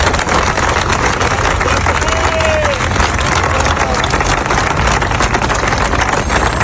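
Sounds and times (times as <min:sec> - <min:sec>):
large crowd applauding in a town square: 0:00.0 - 0:06.6.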